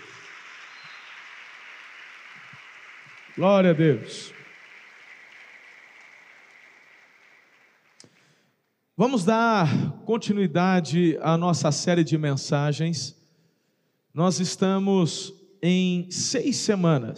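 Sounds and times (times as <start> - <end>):
audience applauding: 0.0 - 8.4
speech: 3.4 - 4.4, 9.0 - 13.2, 14.1 - 17.1.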